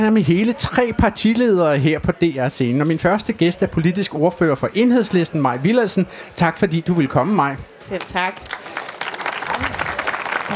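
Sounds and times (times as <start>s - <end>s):
speech: 0.0s - 8.8s, 9.6s - 9.8s
audience applause: 8.0s - 10.5s.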